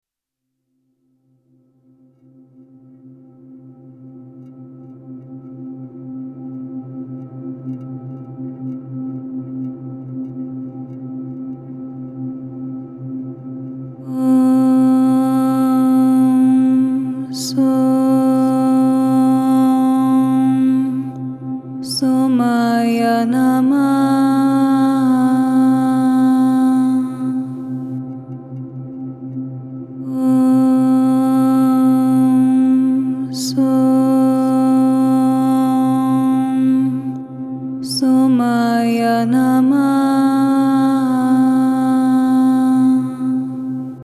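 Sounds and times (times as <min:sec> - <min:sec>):
mantra chanting: 0:14.0 - 0:28.6, 0:29.9 - 0:44.0.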